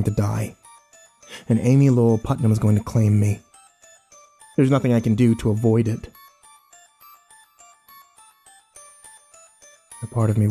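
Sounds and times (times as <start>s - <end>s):
speech: 0.0s - 0.6s, 1.3s - 3.5s, 4.6s - 6.2s, 10.1s - 10.4s
bells ringing: 0.0s - 10.4s.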